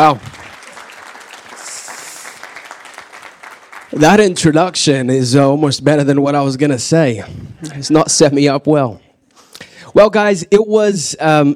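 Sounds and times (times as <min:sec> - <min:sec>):
speech: 0:00.0 - 0:00.3, 0:03.9 - 0:09.0, 0:10.0 - 0:11.5
church congregation applauding to welcome a speaker: 0:00.0 - 0:04.8.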